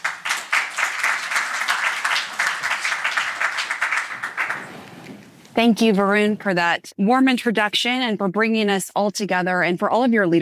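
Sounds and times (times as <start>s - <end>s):
audience applause welcoming a moderator at an evening event: 0.0s - 4.9s
speech: 5.6s - 10.4s.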